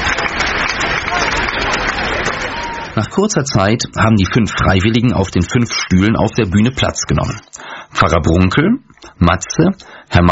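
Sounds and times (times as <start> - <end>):
audience applause at a stage quiz show: 0.0 - 3.2
speech: 3.0 - 10.3.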